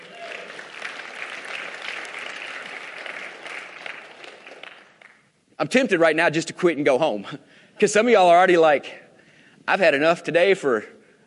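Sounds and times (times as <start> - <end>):
audience hand clapping: 0.0 - 5.3
speech: 5.6 - 9.0, 9.6 - 11.0.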